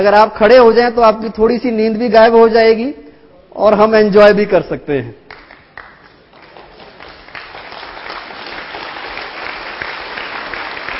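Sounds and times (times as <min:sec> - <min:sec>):
speech: 0:00.0 - 0:03.0, 0:03.6 - 0:05.2
audience clapping: 0:05.3 - 0:10.9.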